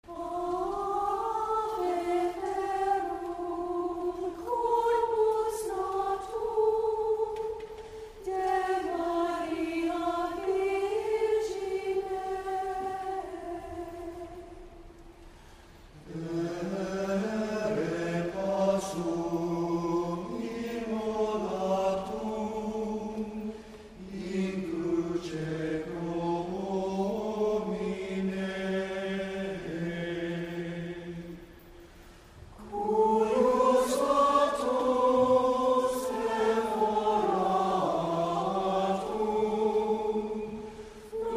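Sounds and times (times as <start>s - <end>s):
chant: 0.0s - 41.3s.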